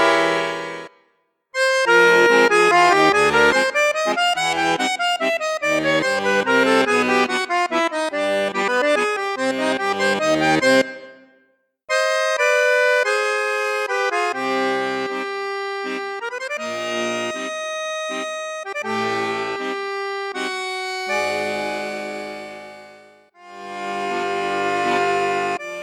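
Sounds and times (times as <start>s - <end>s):
accordion playing low bassoon and flute registers: 0.0s - 1.0s, 1.6s - 11.3s, 11.9s - 25.8s.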